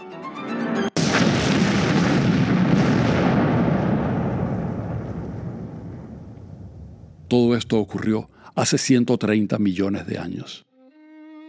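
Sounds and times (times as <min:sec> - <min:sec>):
explosion effect of colliding stars: 0:01.0 - 0:08.0
speech: 0:07.3 - 0:10.7.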